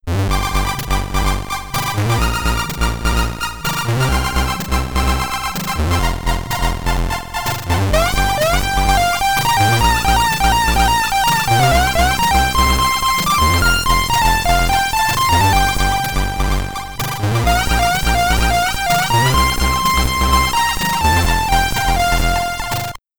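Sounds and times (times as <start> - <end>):
Commodore 64 SID name entry chiptune music: 0.2 - 23.0.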